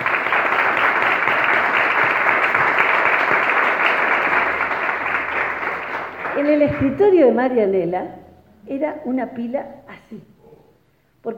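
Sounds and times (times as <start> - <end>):
crowd applauding: 0.0 - 7.2
speech: 6.8 - 10.3.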